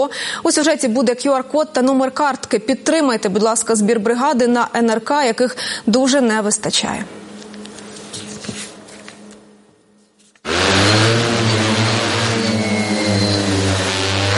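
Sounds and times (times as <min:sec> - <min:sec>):
speech: 0:00.0 - 0:07.2
heavy bomber drone rotors buzzing while taking off: 0:10.5 - 0:14.3
low rumbling: 0:10.5 - 0:14.3.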